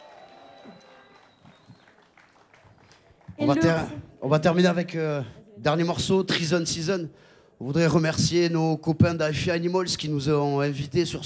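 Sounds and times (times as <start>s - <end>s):
audience applause: 0.0s - 4.0s
speech: 3.4s - 11.2s.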